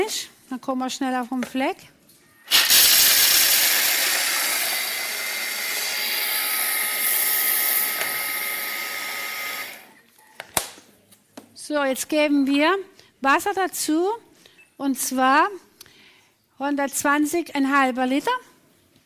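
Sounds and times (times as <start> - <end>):
speech: 0.0 - 2.6, 11.7 - 15.7, 16.6 - 18.5
blender grinding dry nuts: 2.5 - 9.9.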